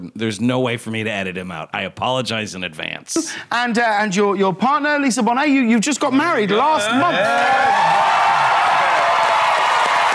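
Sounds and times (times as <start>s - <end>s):
speech: 0.1s - 8.4s
talk show studio audience clapping and cheering: 6.9s - 10.1s.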